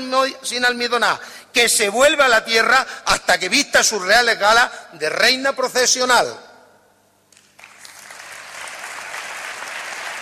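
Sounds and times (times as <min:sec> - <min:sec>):
speech: 0:00.0 - 0:06.4
audience applause: 0:07.6 - 0:10.2.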